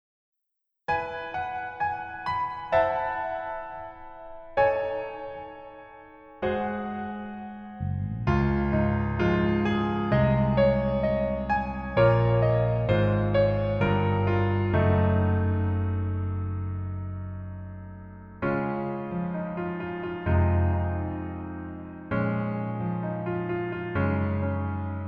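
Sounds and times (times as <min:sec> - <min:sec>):
piano melody instrumental: 0:00.9 - 0:25.0.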